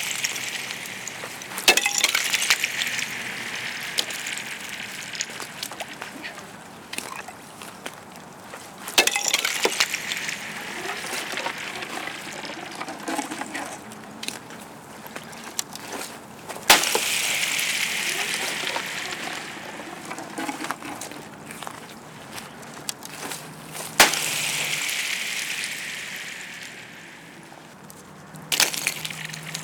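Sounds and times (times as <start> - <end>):
ice blocks thrown into a frozen pond: 0.0 - 7.9, 8.5 - 27.6, 28.5 - 29.6.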